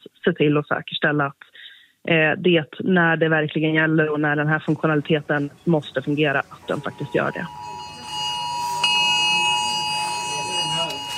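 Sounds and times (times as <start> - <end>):
speech: 0.2 - 7.7
emergency alert alarm tone on phone: 6.6 - 11.1
faint murmur of voices: 6.6 - 11.1.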